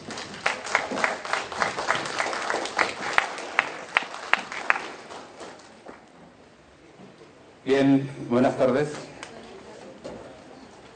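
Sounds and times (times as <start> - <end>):
audience applause: 0.0 - 6.0
speech: 7.7 - 9.1.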